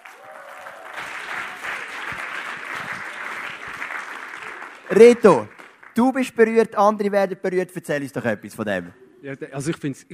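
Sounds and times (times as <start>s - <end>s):
audience applause: 0.0s - 6.0s
speech: 4.9s - 10.1s.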